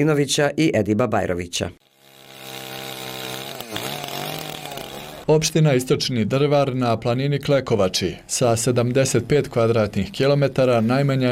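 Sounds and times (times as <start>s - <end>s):
speech: 0.0s - 1.8s, 5.3s - 11.3s
chainsaw cutting wood: 1.8s - 5.3s.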